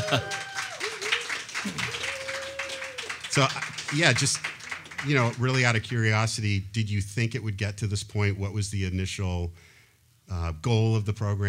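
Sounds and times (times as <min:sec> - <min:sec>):
voices cheering: 0:00.0 - 0:05.6
audience clapping: 0:00.0 - 0:06.3
speech: 0:00.1 - 0:00.4, 0:03.4 - 0:09.7, 0:10.3 - 0:11.4.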